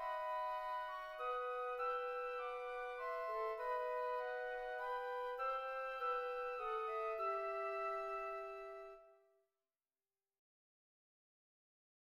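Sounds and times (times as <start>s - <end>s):
flutes playing a hymn: 0.0s - 9.2s.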